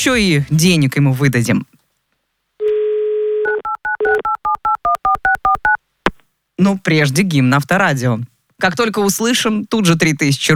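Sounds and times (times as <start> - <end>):
speech: 0.0 - 1.7, 6.6 - 10.5
telephone dial tone: 2.6 - 5.8.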